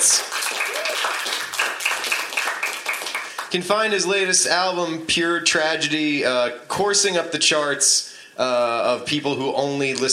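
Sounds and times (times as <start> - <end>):
crowd applauding: 0.0 - 3.6
person cheering: 0.6 - 1.2
speech: 3.5 - 10.1.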